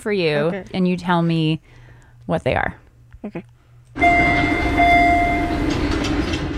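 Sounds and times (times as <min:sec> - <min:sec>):
speech: 0:00.0 - 0:04.9
two-tone subway train chime: 0:04.0 - 0:06.5.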